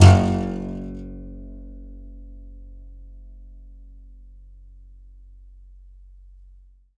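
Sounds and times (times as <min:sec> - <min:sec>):
contrabass balalaika plucked: 0:00.0 - 0:01.6.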